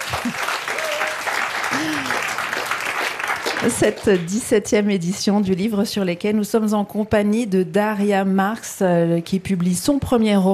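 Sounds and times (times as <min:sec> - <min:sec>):
live audience applause at the Le Livre sur les quais book fair in Morges: 0:00.0 - 0:04.4
speech: 0:03.6 - 0:10.5.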